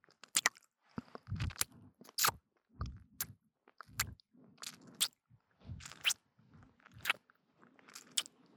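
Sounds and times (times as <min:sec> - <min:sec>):
ASMR ear licking sounds: 0:00.4 - 0:02.4, 0:03.2 - 0:05.1, 0:05.8 - 0:06.2, 0:07.0 - 0:07.2, 0:07.9 - 0:08.3.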